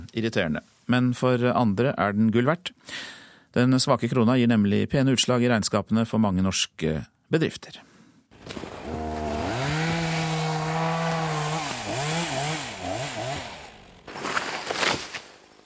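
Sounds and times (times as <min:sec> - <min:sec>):
speech: 0:00.1 - 0:08.7
chainsaw felling trees: 0:08.3 - 0:15.6.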